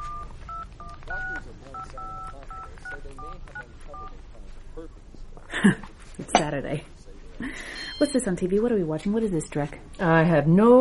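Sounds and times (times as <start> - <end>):
touch-tone beeps of telephone number being dialed: 0.0 - 4.1, 7.6 - 8.3
murmur: 0.0 - 10.7
speech: 4.8 - 6.9, 7.5 - 10.7.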